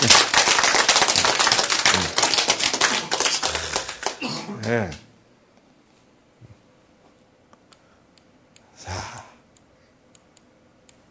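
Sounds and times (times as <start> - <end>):
audience clapping: 0.0 - 5.0
speech: 4.7 - 5.0.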